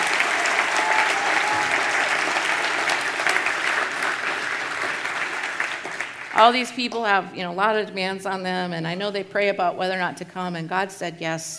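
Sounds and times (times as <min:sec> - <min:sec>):
audience applause welcoming guests to a church ministry gathering: 0:00.0 - 0:06.4
speech: 0:06.4 - 0:11.5.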